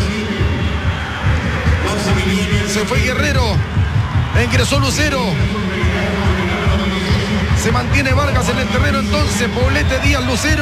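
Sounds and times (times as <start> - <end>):
stadium crowd applauding: 0.0 - 10.5
speech: 2.3 - 3.8, 4.4 - 5.8, 7.6 - 10.5.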